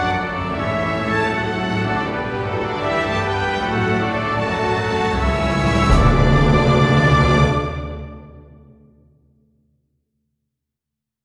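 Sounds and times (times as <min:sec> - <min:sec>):
fanfare: 0:00.0 - 0:08.4.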